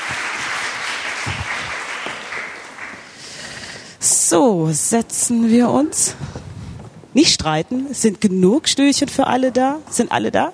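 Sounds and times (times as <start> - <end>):
audience applause: 0.0 - 3.6
speech: 4.3 - 6.4, 7.2 - 10.5.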